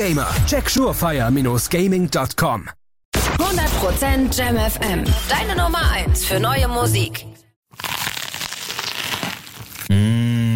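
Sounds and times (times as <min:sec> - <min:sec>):
speech: 0:00.0 - 0:02.8, 0:03.4 - 0:08.0
crunchy bite into food: 0:07.7 - 0:10.5.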